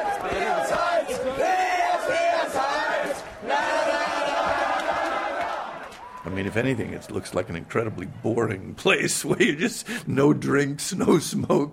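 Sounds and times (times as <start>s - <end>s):
supporters chanting and cheering for a poker tournament winner: 0.0s - 8.2s
speech: 6.3s - 11.7s.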